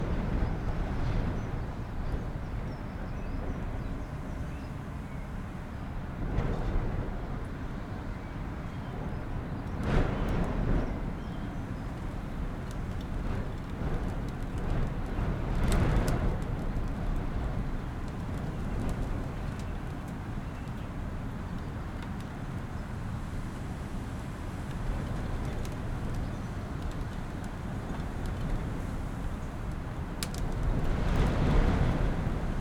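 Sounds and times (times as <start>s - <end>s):
blustery wind in an attic interior: 0.0s - 32.5s
sporadic raindrops: 11.8s - 22.4s, 24.2s - 32.5s.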